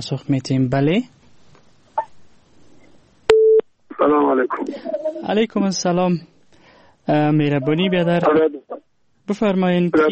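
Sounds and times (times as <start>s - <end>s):
speech: 0.0s - 1.2s, 4.6s - 6.3s, 7.1s - 10.1s
telephone busy tone after a listener's call dropped: 3.3s - 3.6s.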